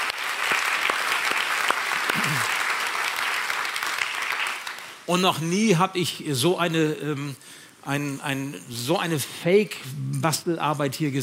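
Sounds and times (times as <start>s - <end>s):
audience applause: 0.0s - 5.0s
speech: 2.2s - 2.6s, 5.1s - 11.2s.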